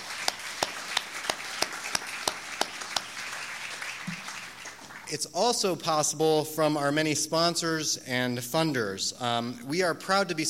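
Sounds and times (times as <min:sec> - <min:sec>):
audience round of applause: 0:00.0 - 0:05.1
speech: 0:05.1 - 0:10.4.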